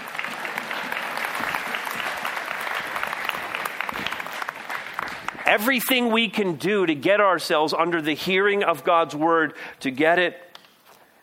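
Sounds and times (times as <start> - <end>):
audience applause: 0.0 - 5.8
speech: 5.5 - 10.5.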